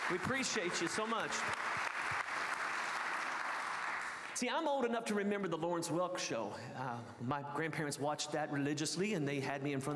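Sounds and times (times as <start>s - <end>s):
audience applause: 0.0s - 4.4s
speech: 0.1s - 1.6s, 4.4s - 9.9s.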